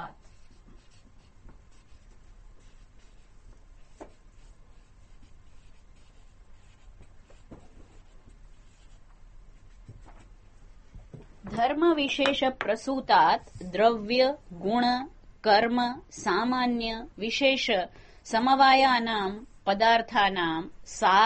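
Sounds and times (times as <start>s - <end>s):
writing during a lecture on a Sanskrit sutra: 0.0s - 11.1s
speech: 11.7s - 21.2s.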